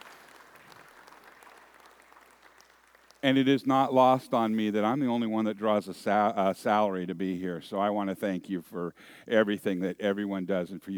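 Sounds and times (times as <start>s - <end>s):
audience applause: 0.0s - 3.2s
speech: 3.2s - 10.9s.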